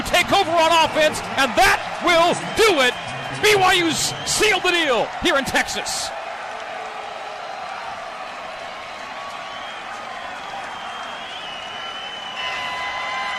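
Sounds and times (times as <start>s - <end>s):
stadium crowd cheering: 0.0s - 13.3s
speech: 0.2s - 6.2s
thin whistles: 9.4s - 12.6s.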